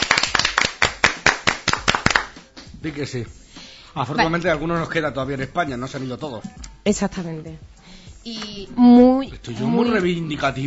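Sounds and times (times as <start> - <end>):
applause for a surgeon from a Valencia hospital: 0.0 - 2.8
speech: 2.8 - 10.6.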